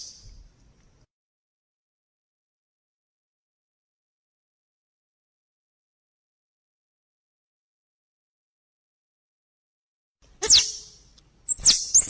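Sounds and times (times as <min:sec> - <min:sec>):
squirrel chattering: 0:10.4 - 0:10.9, 0:11.5 - 0:12.0.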